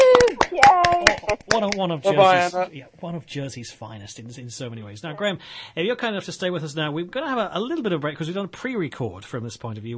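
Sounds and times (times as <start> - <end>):
studio audience clapping for a returning guest: 0.0 - 2.0
loud talking voices: 0.0 - 2.8
speech: 1.3 - 9.9.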